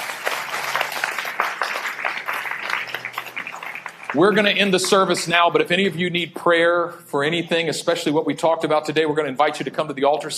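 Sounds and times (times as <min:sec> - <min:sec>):
audience clapping: 0:00.0 - 0:05.3
speech: 0:04.1 - 0:10.3.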